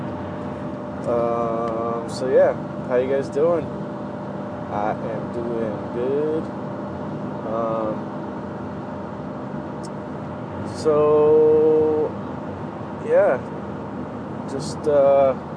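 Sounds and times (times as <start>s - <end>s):
car driving on the road in the early morning: 0.0s - 15.5s
speech: 1.0s - 3.8s, 4.7s - 6.6s, 7.5s - 8.1s, 10.7s - 12.2s, 13.1s - 13.6s, 14.5s - 15.5s.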